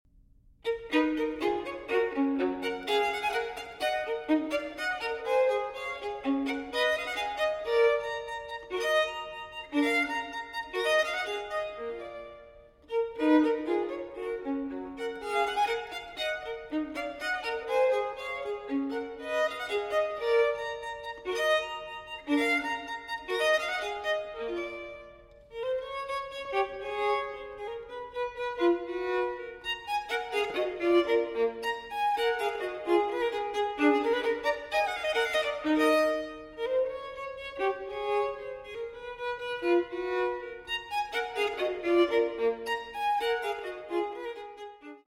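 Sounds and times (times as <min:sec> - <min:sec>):
solo violin allegro in E minor: 0:00.5 - 0:45.0.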